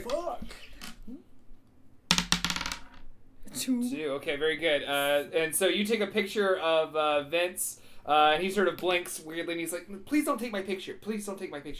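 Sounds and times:
speech: 0.0s - 1.2s, 3.6s - 11.7s
dice rolling on a hard tabletop: 2.1s - 3.1s.

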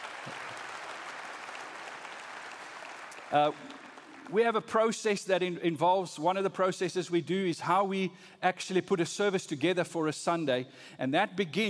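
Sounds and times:
round of applause: 0.0s - 4.6s
speech: 3.3s - 11.6s.

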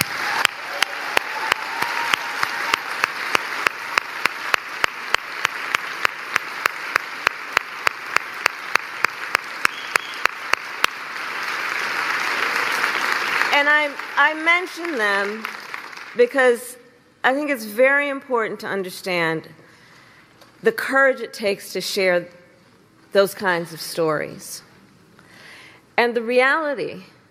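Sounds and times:
audience applause: 0.0s - 16.2s
speech: 14.3s - 15.6s, 16.2s - 19.6s, 20.6s - 22.4s, 23.1s - 24.7s, 26.0s - 27.2s.

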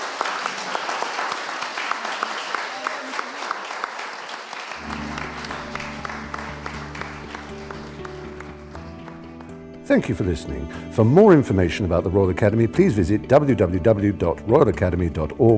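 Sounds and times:
crowd audience applause: 0.0s - 9.8s
speech: 9.9s - 15.5s.

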